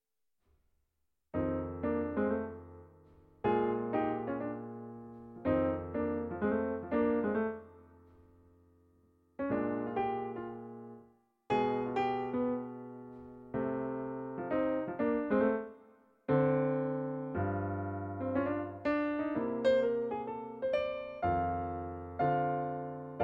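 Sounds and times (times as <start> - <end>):
blues jazz piano: 1.4 - 8.5, 9.4 - 23.2.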